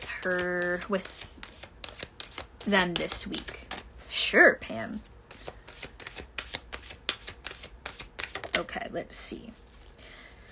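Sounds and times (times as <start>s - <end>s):
deck of cards being shuffled: 0.0s - 3.9s, 5.3s - 8.7s
speech: 0.2s - 1.4s, 2.6s - 5.1s, 8.6s - 9.6s.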